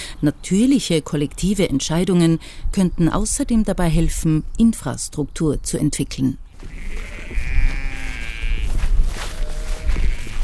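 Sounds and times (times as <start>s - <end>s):
speech: 0.2s - 7.6s
sheep bleating in a pasture: 6.6s - 10.4s.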